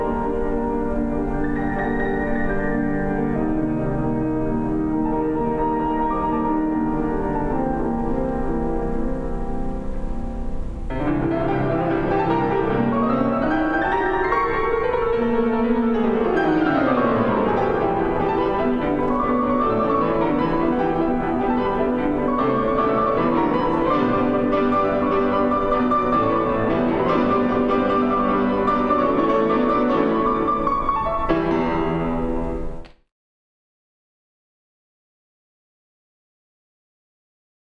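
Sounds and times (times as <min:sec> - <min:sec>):
piano theme: 0:00.0 - 0:33.1.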